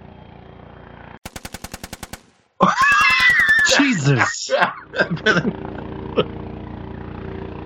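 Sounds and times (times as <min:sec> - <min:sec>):
50 caliber machine gun firing rounds: 0:01.2 - 0:03.7
harsh high sustained roar: 0:02.6 - 0:05.4
laughter: 0:02.6 - 0:06.3
speech: 0:03.8 - 0:06.4.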